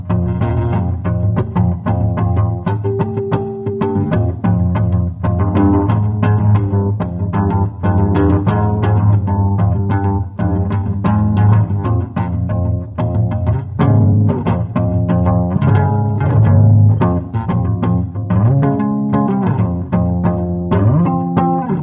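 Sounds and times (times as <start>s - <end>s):
bass solo: 0.0s - 21.8s.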